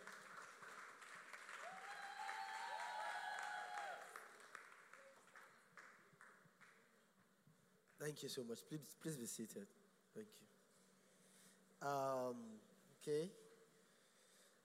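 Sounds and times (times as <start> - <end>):
standing ovation applause from an audience welcoming guests: 0.0 - 6.7
speech: 8.0 - 10.6, 11.8 - 13.4.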